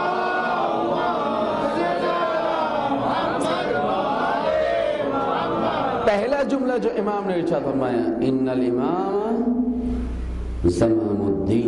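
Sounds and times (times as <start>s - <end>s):
large crowd chanting salawat in unison: 0.0s - 6.2s
speech: 6.1s - 9.6s, 10.6s - 11.6s.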